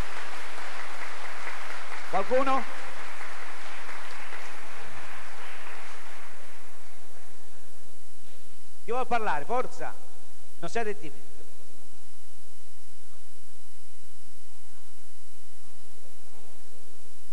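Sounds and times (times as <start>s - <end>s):
audience applause: 0.0s - 7.0s
speech: 2.1s - 2.8s, 8.9s - 10.0s, 10.6s - 11.3s.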